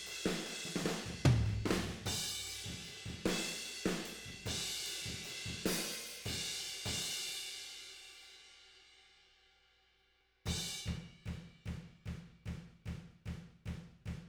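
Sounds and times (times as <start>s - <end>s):
tom drums: 0.0s - 7.2s, 10.5s - 14.2s.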